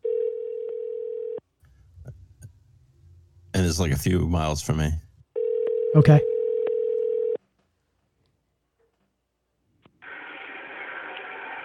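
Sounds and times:
telephone ringing tone: 0.0s - 1.4s, 5.4s - 7.4s
speech: 3.6s - 5.0s, 6.0s - 6.3s.

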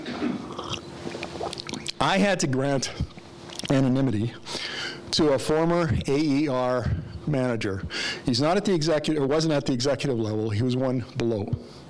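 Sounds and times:
person sipping water from a glass: 0.3s - 2.0s, 2.9s - 3.7s
speech: 2.0s - 3.1s, 3.7s - 11.8s.

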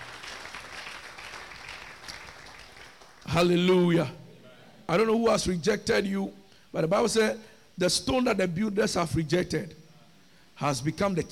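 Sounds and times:
audience clapping hands: 0.0s - 3.8s
speech: 3.3s - 4.2s, 4.9s - 9.8s, 10.6s - 11.2s.

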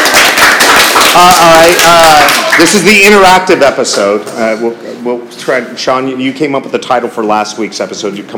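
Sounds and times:
small group of students clapping: 0.0s - 4.2s
speech: 1.2s - 8.3s.

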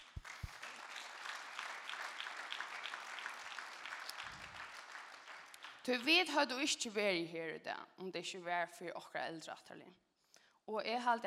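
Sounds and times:
audience applause at a gathering: 0.0s - 5.8s
speech: 5.8s - 10.0s, 10.7s - 11.2s.

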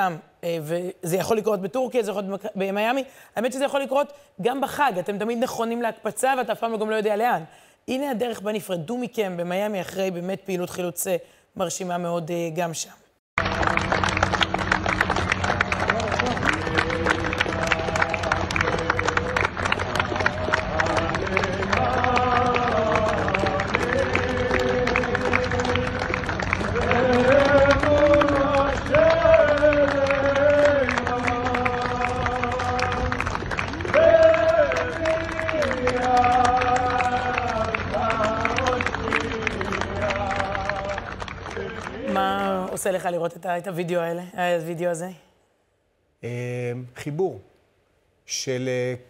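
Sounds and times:
speech: 0.0s - 13.0s, 43.0s - 45.2s, 46.2s - 47.5s, 48.3s - 49.0s
rhythmic clapping: 13.4s - 42.9s
crowd singing: 13.6s - 42.8s.

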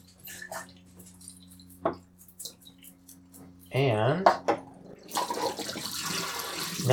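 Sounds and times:
speech: 0.5s - 1.2s, 3.8s - 4.5s
film developer being poured into a developing tank: 5.0s - 6.9s.

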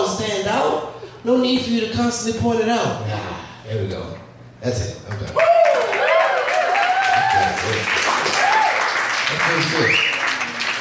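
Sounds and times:
speech: 0.2s - 5.6s, 7.4s - 8.1s, 9.4s - 10.1s
applause: 5.2s - 10.7s.

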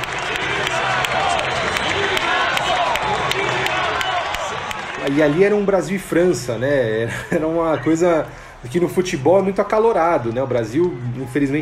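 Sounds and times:
scattered clapping: 0.0s - 5.6s
stadium crowd cheering: 0.0s - 11.6s
speech: 5.1s - 11.6s
laughter: 6.9s - 8.2s.

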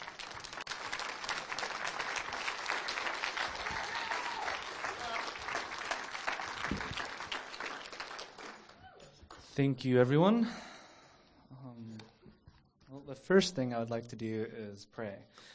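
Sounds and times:
audience clapping to welcome a speaker: 0.0s - 8.8s
speech: 9.6s - 10.7s, 13.3s - 15.5s.

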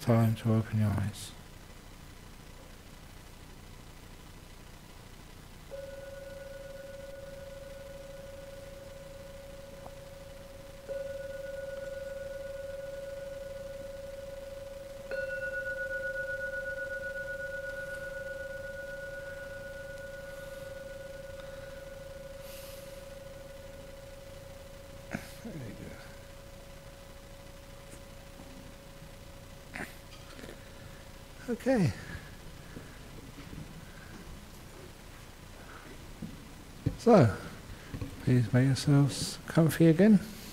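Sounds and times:
speech: 0.0s - 1.4s, 31.6s - 32.0s, 37.1s - 37.4s, 38.3s - 40.4s
gong struck and ringing: 5.7s - 29.5s.

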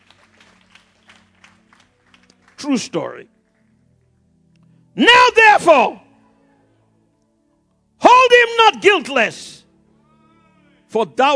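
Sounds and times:
audience clapping: 0.0s - 3.7s
speech: 2.6s - 3.4s, 5.0s - 6.0s, 8.8s - 9.5s, 10.9s - 11.3s.

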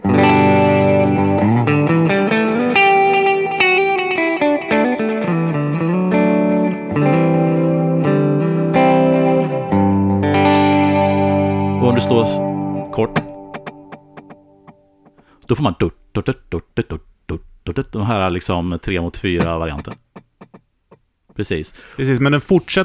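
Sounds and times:
distorted electric guitar through a stereo delay: 0.0s - 15.3s, 19.4s - 20.7s
speech: 12.0s - 13.1s, 15.5s - 17.1s, 17.8s - 20.0s, 21.4s - 22.8s.

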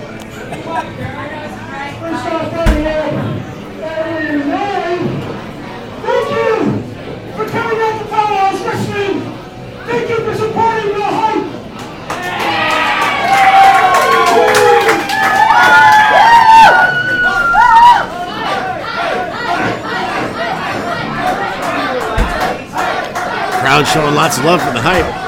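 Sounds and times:
excited crowd chatter: 0.0s - 25.2s
crowd roaring and cheering: 12.1s - 25.2s
speech: 23.8s - 25.2s.

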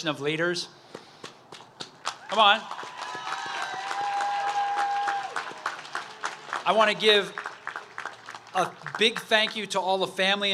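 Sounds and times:
speech: 0.0s - 0.9s, 2.3s - 2.9s, 6.6s - 7.4s, 8.5s - 10.5s
audience applause: 2.0s - 9.7s.

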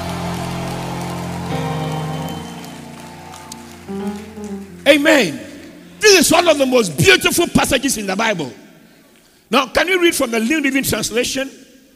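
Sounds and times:
audience clapping hands: 0.0s - 5.8s
speech: 4.9s - 5.4s, 6.0s - 8.6s, 9.5s - 11.6s.

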